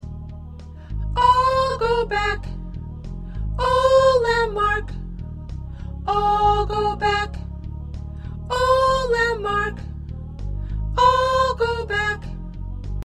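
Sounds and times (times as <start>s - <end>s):
soprano singing choir parts: 0.9s - 2.7s, 3.6s - 5.0s, 5.8s - 7.5s, 8.4s - 9.9s, 10.8s - 12.4s.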